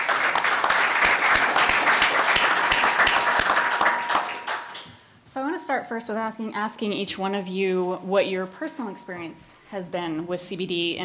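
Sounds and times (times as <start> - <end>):
audience applause welcoming guests onto a panel: 0.0 - 4.8
speech: 5.8 - 11.0.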